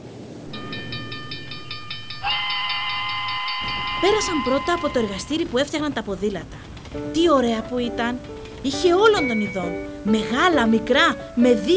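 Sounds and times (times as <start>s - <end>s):
small train chuffing with steam puffs: 0.4s - 11.7s
shrill high steam whistle: 2.2s - 5.3s
speech: 4.0s - 11.7s.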